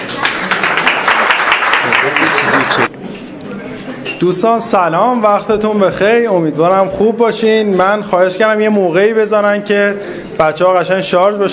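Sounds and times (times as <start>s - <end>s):
audience applause: 0.0s - 2.9s
speech: 4.2s - 11.5s.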